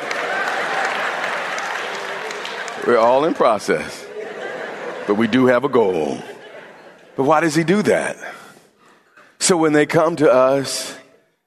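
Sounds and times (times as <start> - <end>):
sparse audience clapping: 0.0 - 3.9
laughter: 0.0 - 8.2
speech: 2.8 - 4.1, 5.1 - 6.3, 7.2 - 8.4, 9.4 - 11.0.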